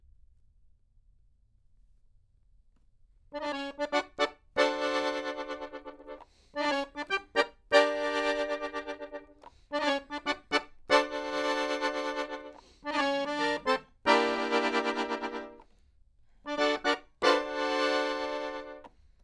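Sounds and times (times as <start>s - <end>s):
accordion: 3.4s - 15.7s, 16.5s - 18.9s.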